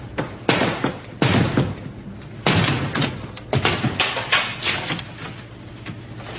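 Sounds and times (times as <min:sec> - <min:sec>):
door being broken down: 0:00.2 - 0:01.8, 0:02.4 - 0:05.4.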